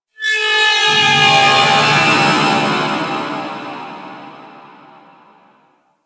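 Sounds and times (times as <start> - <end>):
space trench battle ambience: 0.9 - 5.4.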